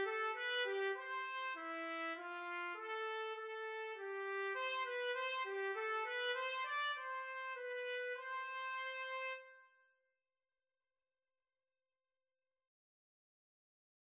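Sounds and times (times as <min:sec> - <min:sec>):
trumpet and trombone duet: 0:00.0 - 0:09.5.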